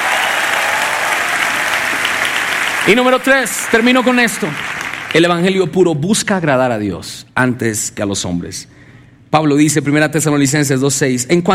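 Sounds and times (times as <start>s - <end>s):
audience applauding: 0.0s - 5.5s
speech: 2.9s - 11.5s.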